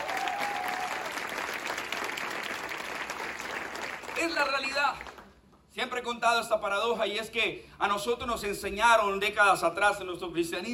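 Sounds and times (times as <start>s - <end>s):
audience applause: 0.0s - 5.3s
speech: 4.2s - 5.1s, 5.8s - 10.7s.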